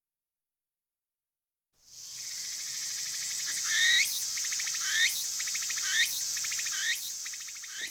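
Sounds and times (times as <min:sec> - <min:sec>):
cricket chirping: 0:01.9 - 0:07.8.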